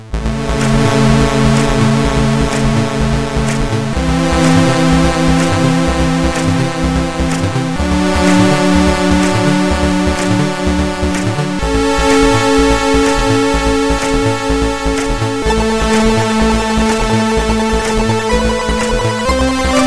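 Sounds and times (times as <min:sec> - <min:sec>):
music construction kit loop: 0:00.1 - 0:19.8.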